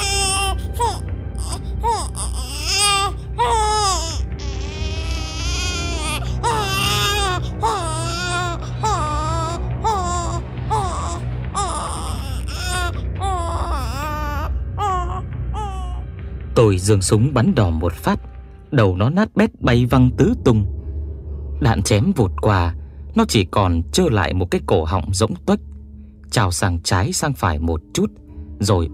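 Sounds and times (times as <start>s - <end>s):
wounded monster letting out a shrill wailing cry: 0.0s - 16.0s
speech: 16.7s - 20.8s, 21.6s - 25.7s, 26.3s - 28.9s.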